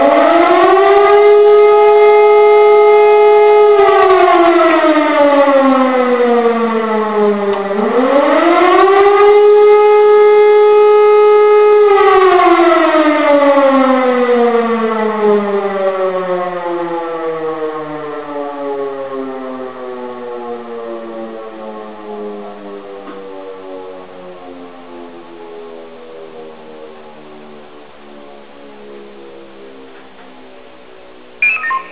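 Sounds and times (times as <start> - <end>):
civil protection alarm: 0.0 - 22.1, 31.4 - 31.8.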